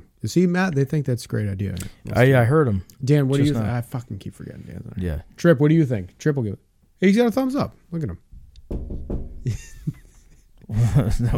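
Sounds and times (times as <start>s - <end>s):
speech: 0.2s - 9.7s, 10.7s - 11.3s
banging on a wall: 8.3s - 9.6s.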